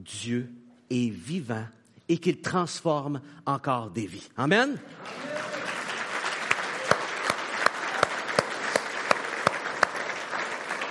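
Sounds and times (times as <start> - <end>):
speech: 0.0 - 5.4
audience applauding: 4.9 - 10.8.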